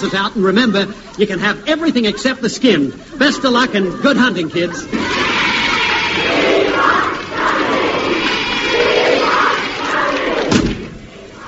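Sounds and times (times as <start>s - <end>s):
speech: 0.0s - 5.2s
laughter: 0.0s - 10.6s
large crowd of fans cheering and roaring outside: 2.0s - 11.4s
sharp thump: 10.5s - 10.9s.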